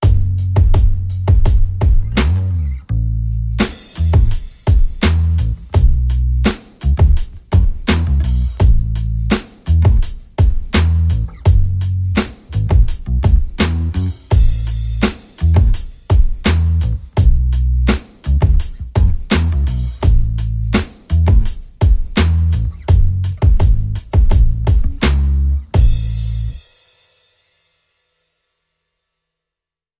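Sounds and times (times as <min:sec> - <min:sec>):
drum and bass music: 0:00.0 - 0:26.6.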